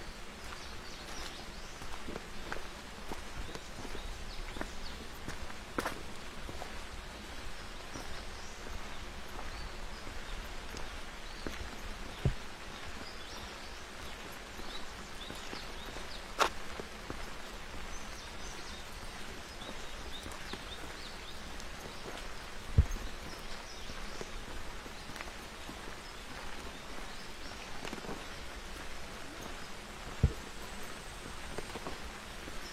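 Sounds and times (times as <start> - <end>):
rain drops pattering on a forest trail: 0.0 - 32.6.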